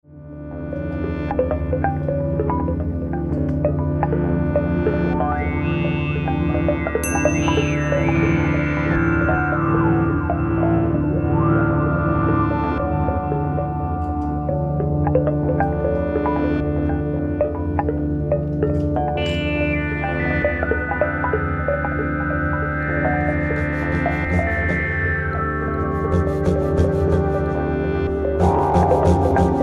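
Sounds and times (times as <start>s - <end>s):
theremin: 0.2s - 29.6s.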